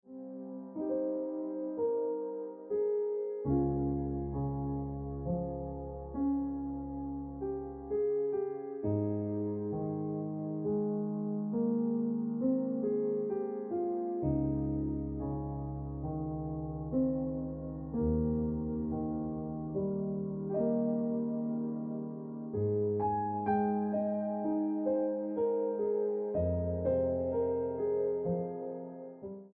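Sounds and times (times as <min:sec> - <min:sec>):
piano ringtone music: 0:00.1 - 0:29.5.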